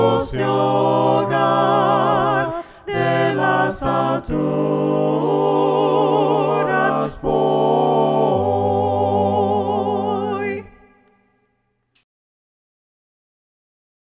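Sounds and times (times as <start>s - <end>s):
voices singing hymns a cappella: 0.0s - 11.3s.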